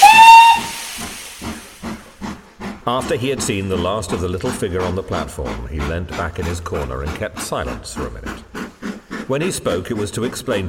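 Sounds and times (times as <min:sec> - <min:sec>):
steam train whistle as train departs: 0:00.0 - 0:01.4
hissing steam: 0:00.0 - 0:10.6
steam train chuffing as it pulls away: 0:00.0 - 0:10.6
speech: 0:02.9 - 0:08.4, 0:09.3 - 0:10.6.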